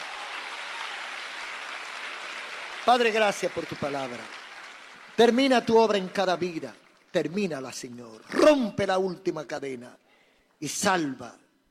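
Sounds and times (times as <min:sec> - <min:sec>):
congregation applauding in a church service: 0:00.0 - 0:08.0
speech: 0:02.8 - 0:04.4, 0:05.2 - 0:10.0, 0:10.6 - 0:11.4.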